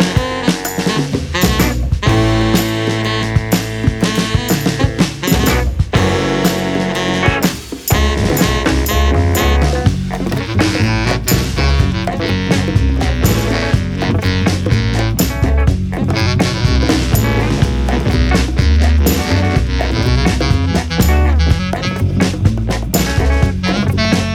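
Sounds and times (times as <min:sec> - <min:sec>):
instrumental music: 0:00.0 - 0:24.3.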